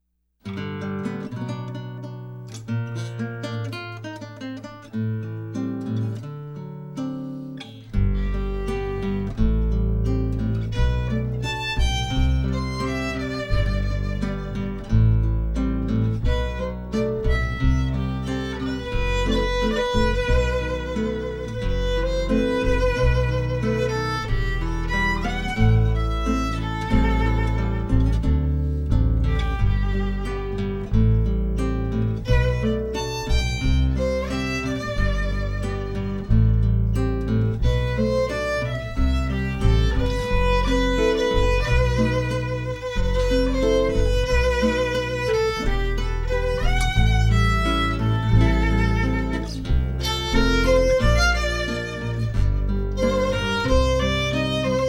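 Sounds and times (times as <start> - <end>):
guitar: 0.0 - 54.8
cello: 7.9 - 54.8
violin: 7.9 - 54.8.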